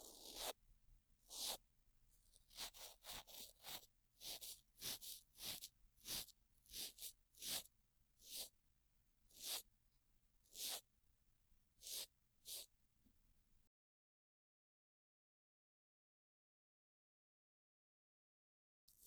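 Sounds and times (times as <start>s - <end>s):
cotton swab brushing ear rim and earlobe on left side: 0.0s - 0.5s, 1.3s - 1.6s, 2.4s - 8.5s, 9.4s - 9.6s, 10.5s - 10.8s, 11.8s - 12.7s.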